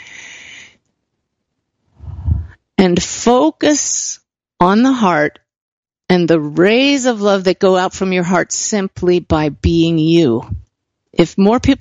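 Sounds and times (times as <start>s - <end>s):
deep cleansing breath: 0.0s - 0.8s, 2.0s - 2.6s
speech: 2.8s - 5.4s, 6.1s - 11.8s.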